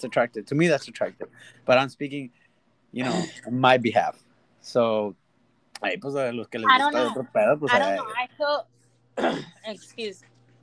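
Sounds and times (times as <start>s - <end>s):
speech: 0.0s - 5.2s, 5.8s - 10.3s
low steady hum: 0.0s - 10.6s
person coughing and choking in a park: 3.0s - 3.4s, 9.2s - 9.6s.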